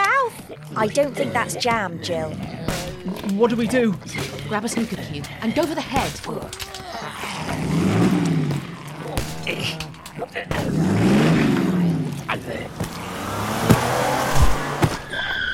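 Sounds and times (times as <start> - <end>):
speech: 0.6 - 8.2, 9.5 - 11.2
sharp knocks and bangs: 2.7 - 5.0, 7.6 - 11.8, 12.7 - 15.1
tires scraping: 7.3 - 15.5
4x4 car engine surging while driving and skidding: 7.4 - 15.5.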